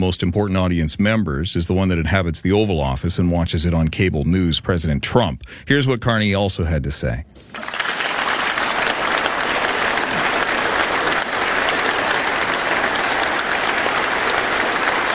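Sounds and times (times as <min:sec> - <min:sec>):
speech: 0:00.0 - 0:07.8
audience applause: 0:07.5 - 0:15.1.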